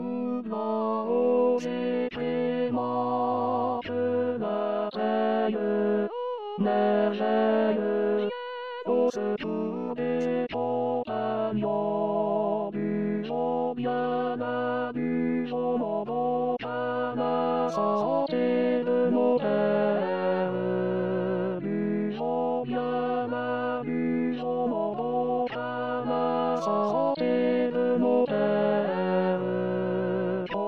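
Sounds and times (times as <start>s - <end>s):
tenor voice singing: 0.0s - 30.6s.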